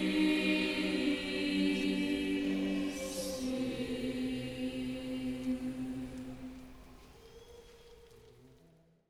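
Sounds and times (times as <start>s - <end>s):
mostly teen schola choir singing at a low mass: 0.0s - 7.2s.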